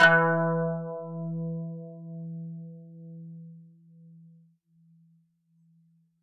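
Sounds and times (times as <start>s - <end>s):
kanun playing E3: 0.0s - 1.9s.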